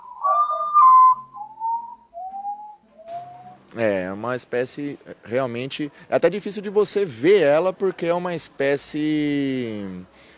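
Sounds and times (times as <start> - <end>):
common potoo mournful whistled call: 0.0 - 3.6
speech: 3.7 - 10.3.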